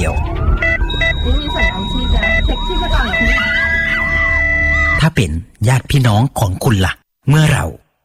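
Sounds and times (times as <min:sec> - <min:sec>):
ambulance siren wailing: 0:00.0 - 0:05.0
steady electronic tones: 0:00.0 - 0:05.1
speech: 0:05.1 - 0:07.8.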